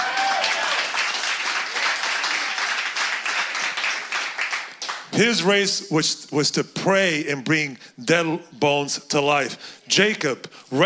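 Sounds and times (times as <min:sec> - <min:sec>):
crowd applauding: 0:00.0 - 0:05.1
speech: 0:05.2 - 0:10.8.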